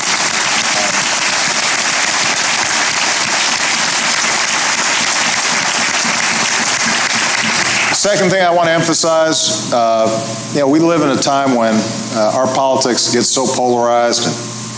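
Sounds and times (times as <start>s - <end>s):
audience applause: 0.0s - 8.0s
speech: 8.1s - 14.6s.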